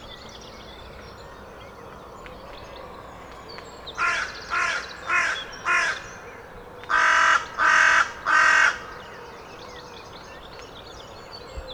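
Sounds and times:
carrion crow cawing: 4.0 - 6.0, 6.9 - 9.0.

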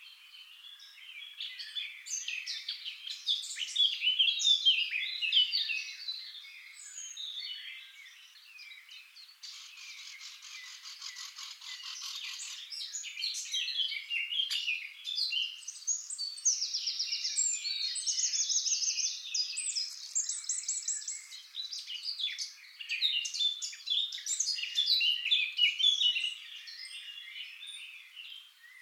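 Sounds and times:
Eurasian blackcap song: 0.0 - 28.7.

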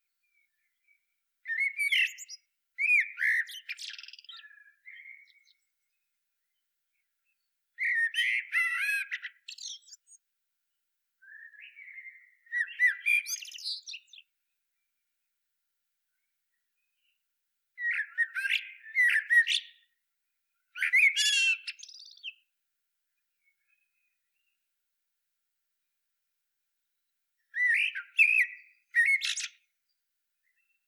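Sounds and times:
Eurasian blackbird song: 0.0 - 26.0, 26.8 - 30.8.

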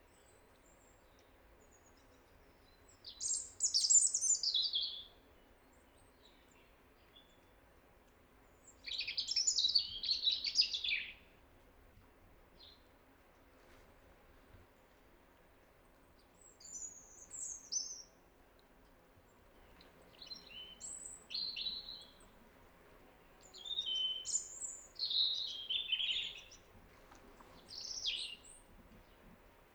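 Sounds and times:
steady low background hiss: 0.0 - 29.7
European robin singing: 0.2 - 5.2, 8.5 - 11.3, 16.2 - 18.2, 19.5 - 29.7.

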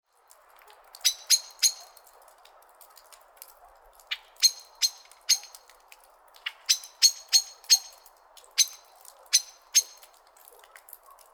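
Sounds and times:
common blackbird chink calls: 1.0 - 2.0, 4.1 - 5.7, 6.4 - 10.1.

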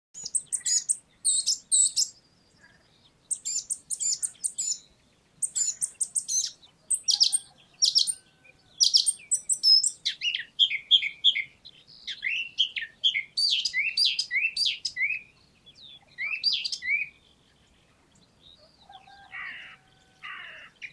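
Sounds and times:
Eurasian blackcap tac calls: 0.2 - 8.2, 8.8 - 11.5, 12.1 - 15.2, 16.2 - 17.1.

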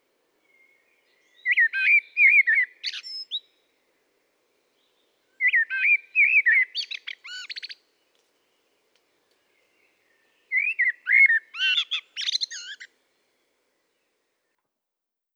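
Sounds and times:
common blackbird fluted song: 0.4 - 3.6, 4.7 - 12.9.

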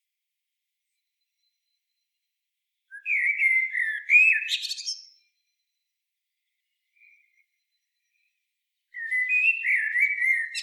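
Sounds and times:
common blackbird singing: 2.9 - 5.1, 9.0 - 10.6.

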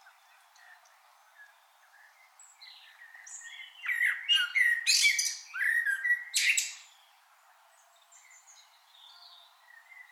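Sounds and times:
common blackbird singing: 0.0 - 7.2, 7.8 - 10.0
birds chirping faintly: 0.0 - 10.0.

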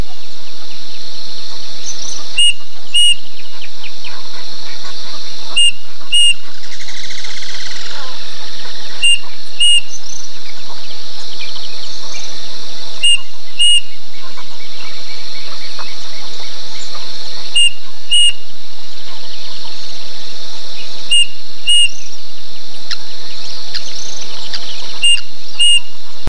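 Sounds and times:
faint chirps: 0.0 - 26.2
high insect drone: 0.0 - 26.2
bird paired whistled notes: 9.0 - 10.2, 13.0 - 13.9, 17.5 - 18.4, 21.1 - 22.1, 23.7 - 25.9.

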